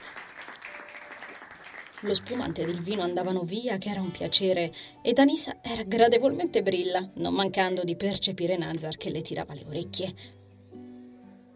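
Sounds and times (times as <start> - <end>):
crackling applause from a group: 0.0 - 3.2
speech: 2.0 - 10.4.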